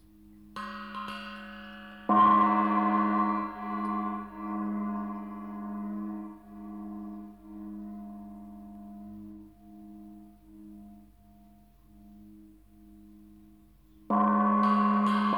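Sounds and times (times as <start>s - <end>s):
cymbal struck: 0.6s - 8.8s, 14.1s - 15.3s.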